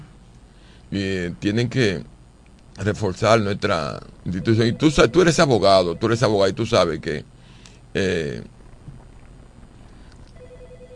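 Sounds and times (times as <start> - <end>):
low noise: 0.0 - 10.9
speech: 0.9 - 2.1, 2.8 - 7.3, 7.9 - 8.6
telephone ringing with an incoming call to a radio show: 4.4 - 6.4, 10.4 - 10.9.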